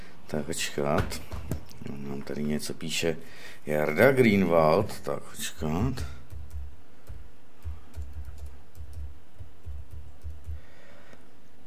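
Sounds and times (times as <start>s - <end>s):
hum: 0.0s - 11.6s
speech: 0.3s - 6.2s
typing a message on a computer keyboard: 6.2s - 10.6s.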